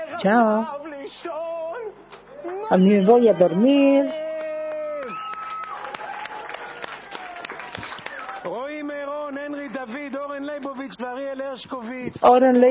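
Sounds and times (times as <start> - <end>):
speech: 0.2 - 1.4, 2.7 - 4.2, 11.2 - 12.6
audience applause: 2.5 - 8.9.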